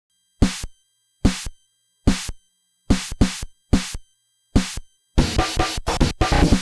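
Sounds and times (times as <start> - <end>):
NES eight-bit drum loop: 0.4 - 0.7, 1.3 - 1.5, 2.1 - 4.0, 4.6 - 6.6.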